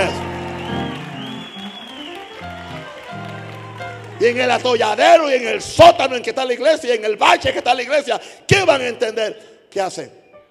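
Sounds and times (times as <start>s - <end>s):
audience applauding: 0.0s - 5.4s
speech: 4.2s - 10.2s.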